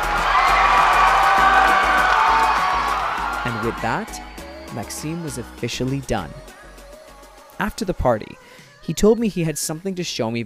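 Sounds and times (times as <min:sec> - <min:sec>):
large crowd applauding: 0:00.0 - 0:04.1
speech: 0:03.5 - 0:06.5, 0:07.6 - 0:10.4.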